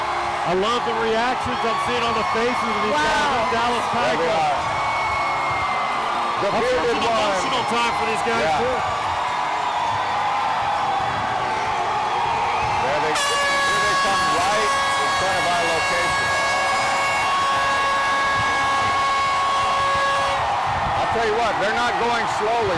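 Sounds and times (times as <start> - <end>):
crowd roaring at a street parade: 0.0 - 22.7
speech: 0.5 - 4.8, 6.4 - 9.0, 21.2 - 22.7
fire truck air horn blaring in a street parade: 13.1 - 20.7.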